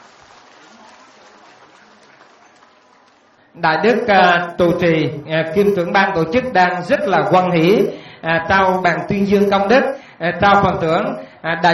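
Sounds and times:
loud applause: 0.0 - 3.6
speech: 3.6 - 11.7.

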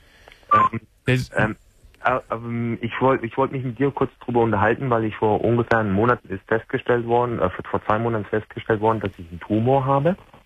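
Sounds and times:
short electronic beeps on a phone line: 0.5 - 0.8
voice-like bursts: 0.5 - 2.4
speech: 0.7 - 10.3.

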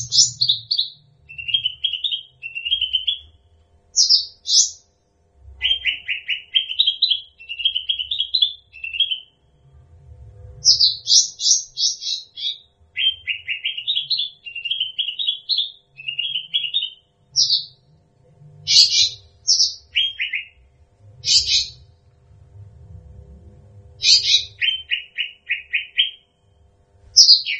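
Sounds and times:
bird song chirps: 0.0 - 4.9, 5.6 - 9.8, 10.6 - 18.0, 18.6 - 22.1, 24.0 - 27.5
low rumble: 9.6 - 10.8, 20.6 - 24.6.

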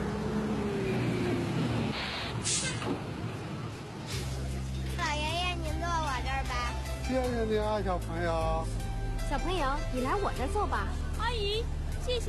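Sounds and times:
city bus number 5 engine rumble pulling into a stop: 0.0 - 12.2
speech: 7.1 - 12.2.

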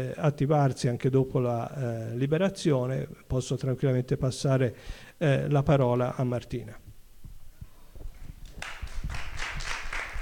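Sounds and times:
speech: 0.0 - 6.8
audience applause: 8.6 - 10.2.

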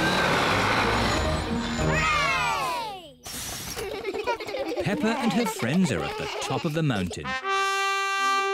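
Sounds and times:
bus engine climbing steep mountain road: 0.0 - 3.0
laughter: 3.7 - 7.3
speech: 4.9 - 7.5.

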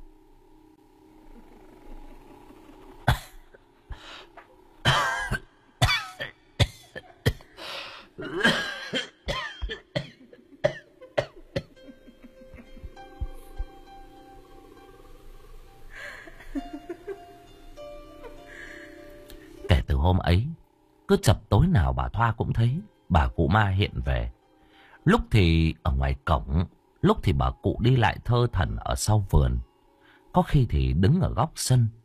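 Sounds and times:
old woman's hacking cough: 3.0 - 3.5, 4.8 - 7.5, 8.2 - 11.8
old woman's snickering laughter: 10.2 - 13.0, 16.0 - 17.4
speech: 20.3 - 20.5, 21.1 - 24.4, 25.0 - 29.7, 30.3 - 32.0.

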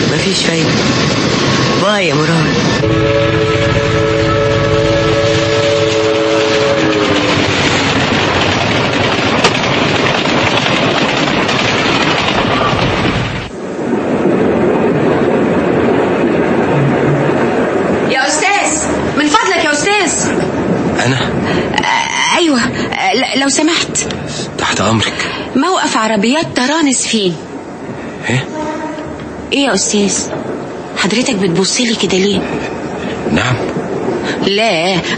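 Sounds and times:
departing train cars rumbling and rattling: 0.0 - 35.1
speech: 0.2 - 3.3, 26.0 - 27.5, 29.5 - 33.8, 34.4 - 35.1
train horn blast: 2.7 - 7.6, 28.3 - 29.3.

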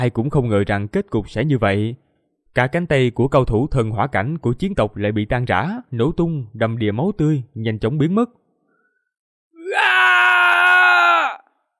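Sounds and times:
speech: 0.0 - 2.0, 2.6 - 8.4
man screaming in agony: 9.6 - 11.6.

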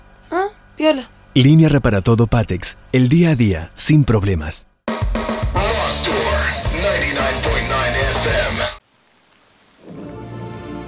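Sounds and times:
speech: 0.8 - 5.2
steady hissing rainfall: 6.2 - 10.8.

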